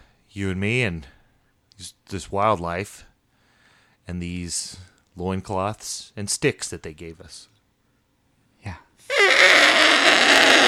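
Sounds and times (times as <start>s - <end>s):
speech: 0.4s - 1.2s, 1.8s - 3.1s, 4.0s - 7.5s, 8.6s - 8.8s
elephant trumpeting: 9.1s - 10.6s.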